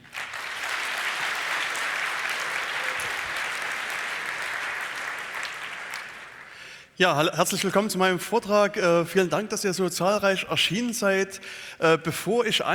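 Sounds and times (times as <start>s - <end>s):
audience applause: 0.0s - 6.7s
speech: 7.0s - 12.7s.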